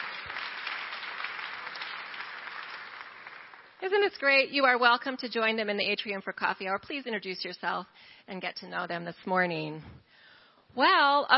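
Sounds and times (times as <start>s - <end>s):
audience clapping to welcome members: 0.0s - 4.2s
speech: 3.8s - 10.1s, 10.7s - 11.3s.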